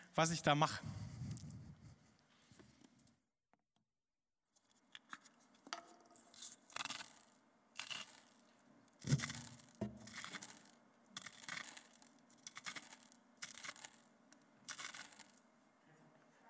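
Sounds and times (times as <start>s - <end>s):
speech: 0.2s - 1.0s
salt mill grinding: 6.3s - 15.4s.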